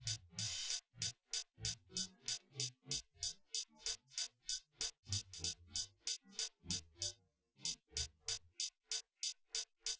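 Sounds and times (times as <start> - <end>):
drums: 0.0 - 9.9.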